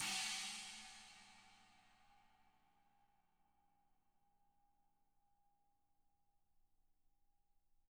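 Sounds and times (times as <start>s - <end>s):
20-inch china cymbal: 0.0s - 1.9s.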